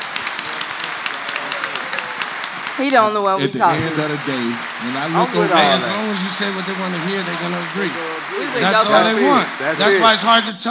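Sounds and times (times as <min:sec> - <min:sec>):
audience clapping: 0:00.0 - 0:10.6
laughter: 0:00.0 - 0:10.6
speech: 0:02.8 - 0:10.6.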